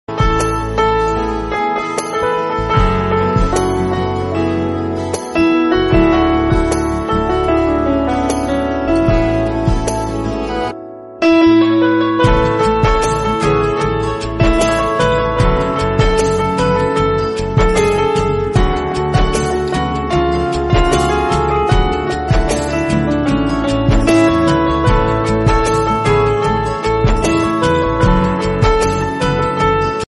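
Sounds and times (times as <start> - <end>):
sad instrumental ringtone melody: 0.2 - 30.0.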